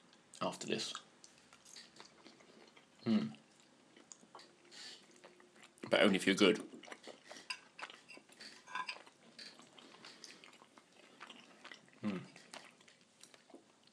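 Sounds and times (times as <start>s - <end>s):
chewing food: 0.1s - 13.9s
speech: 0.4s - 1.1s, 3.0s - 3.4s, 5.9s - 6.7s
cutlery clicking and clinking: 7.4s - 9.1s.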